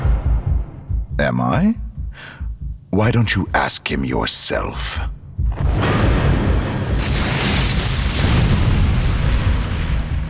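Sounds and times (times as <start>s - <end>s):
speech: 1.2s - 2.4s, 3.0s - 6.2s, 7.0s - 7.4s
thunder crash: 5.4s - 10.2s
lightning bolt striking: 5.6s - 10.2s.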